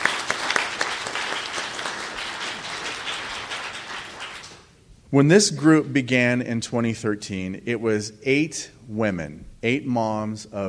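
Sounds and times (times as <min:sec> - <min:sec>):
crowd applause: 0:00.0 - 0:04.7
speech: 0:05.1 - 0:10.6.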